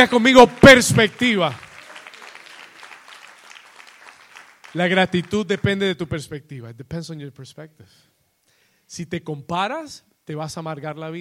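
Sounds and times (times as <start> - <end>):
speech: 0.0 - 1.7, 4.7 - 8.1, 8.9 - 11.1
audience applause: 0.0 - 5.8.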